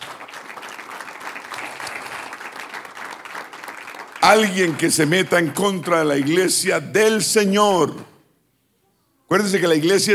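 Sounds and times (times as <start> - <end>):
audience applause: 0.0 - 6.4
speech: 4.2 - 8.1, 9.3 - 10.1.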